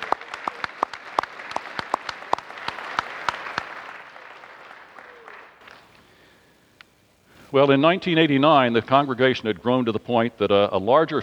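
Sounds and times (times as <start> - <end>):
audience applause: 0.0 - 5.9
speech: 7.5 - 11.2.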